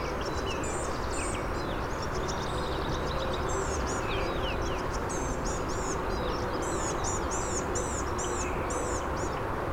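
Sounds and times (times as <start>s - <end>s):
blue-gray gnatcatcher singing: 0.0s - 9.4s.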